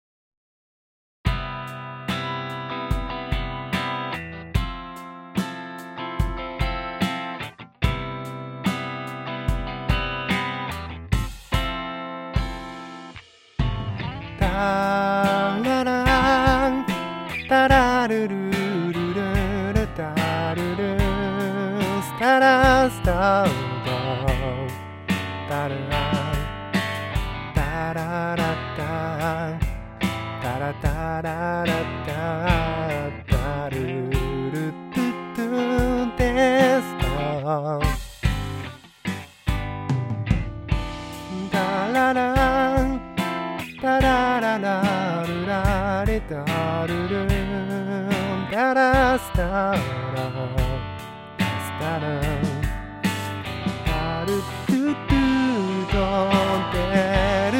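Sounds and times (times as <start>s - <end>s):
drum: 1.3s - 57.5s.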